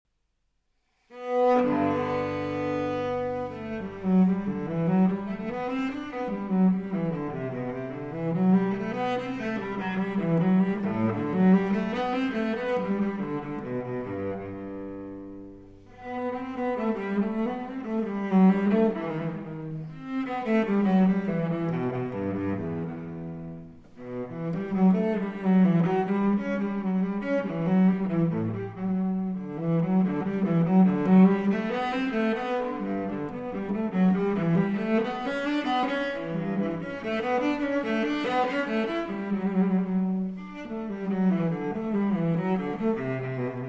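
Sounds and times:
cello allemande: 0.8s - 43.6s.

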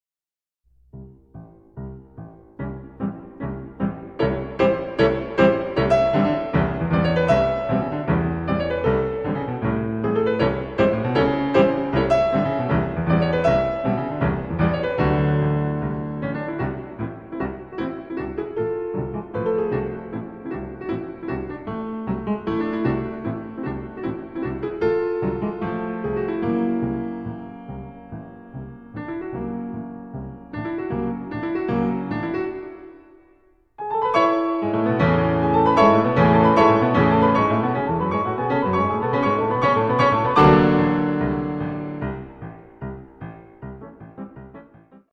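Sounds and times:
piano four hands march: 0.9s - 45.1s.

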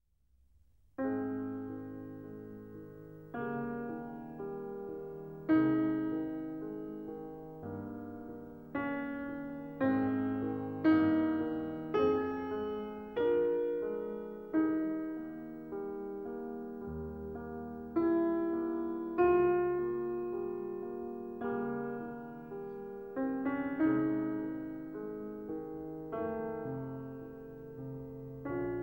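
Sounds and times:
piano sonata in C minor: 0.5s - 28.8s.

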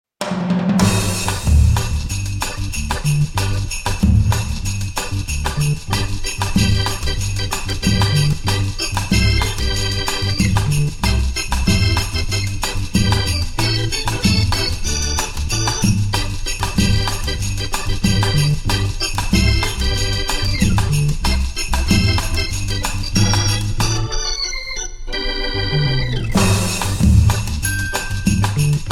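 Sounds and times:
Hammond organ playing a Christmas tune: 0.8s - 28.9s.

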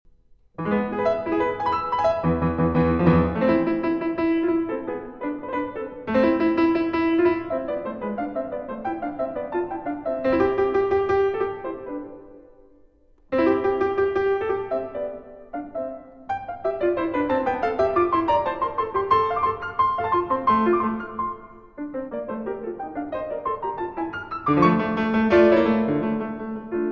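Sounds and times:
fast classical piece in C major: 0.6s - 26.9s.

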